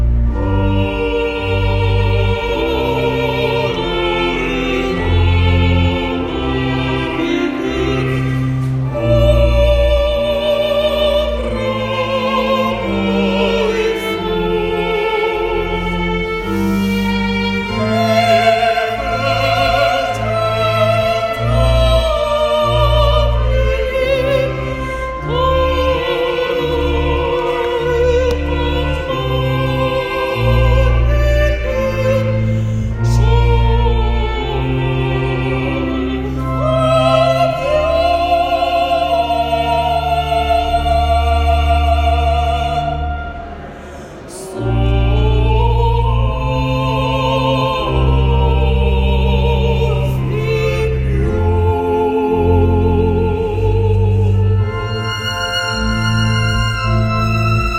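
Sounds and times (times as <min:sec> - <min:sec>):
funeral music band: 0:00.0 - 0:57.7.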